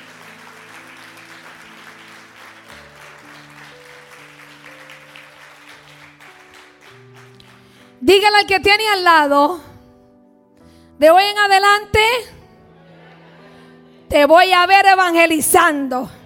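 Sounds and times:
audience applauding: 0.0s - 8.0s
sustained keyboard chords: 0.0s - 15.4s
speech: 8.0s - 9.7s, 11.0s - 12.3s, 14.1s - 16.2s
laughter: 12.7s - 14.0s.

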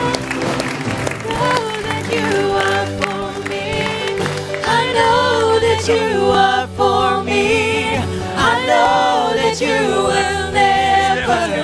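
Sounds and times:
audience clapping: 0.0s - 6.2s
sustained musical tones: 0.0s - 11.6s.

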